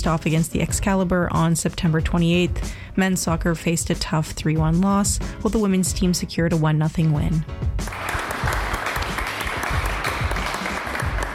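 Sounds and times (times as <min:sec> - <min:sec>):
speech: 0:00.0 - 0:08.2
applause at the final ceremony of Sail Canada's 2025 Senior Championship: 0:07.8 - 0:11.3.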